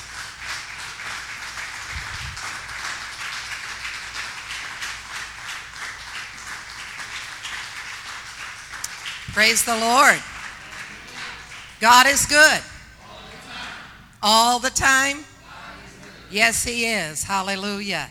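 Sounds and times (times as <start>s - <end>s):
audience clapping to welcome a pastor at a church service: 0.0s - 14.0s
speech: 9.4s - 10.3s, 11.8s - 12.7s, 14.2s - 15.3s, 16.3s - 18.1s.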